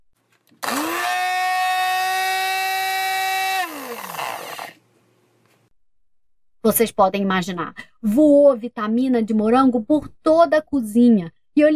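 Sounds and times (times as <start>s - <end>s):
blender running: 0.6s - 4.8s
speech: 6.7s - 11.7s.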